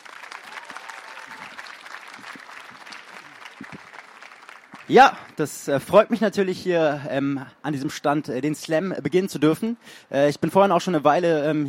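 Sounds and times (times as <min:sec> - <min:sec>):
audience applause: 0:00.0 - 0:05.4
speech: 0:04.9 - 0:11.6.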